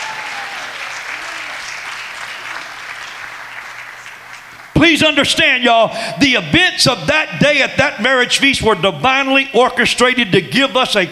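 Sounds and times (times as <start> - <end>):
audience clapping: 0.0 - 4.8
speech: 4.8 - 11.0.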